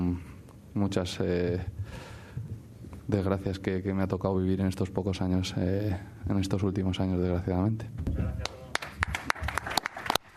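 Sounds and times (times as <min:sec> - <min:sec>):
speech: 0:00.8 - 0:02.1, 0:03.1 - 0:08.5
journalists clapping at a press conference: 0:08.4 - 0:10.3.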